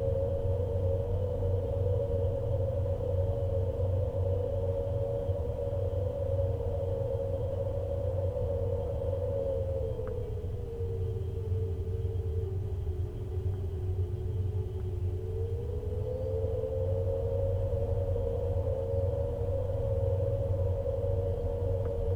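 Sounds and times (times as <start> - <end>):
wind at a window in Saskatchewan: 0.0 - 22.1.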